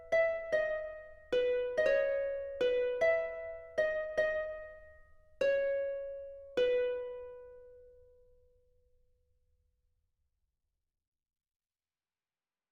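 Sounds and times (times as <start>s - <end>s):
melody: 0.0s - 7.9s.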